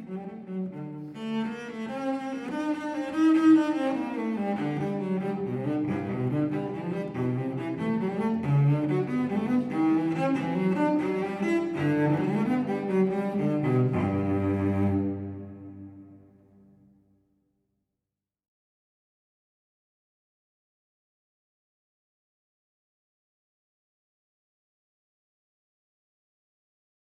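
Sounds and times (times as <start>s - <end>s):
baroque cello suite gigue in G: 0.0s - 16.2s.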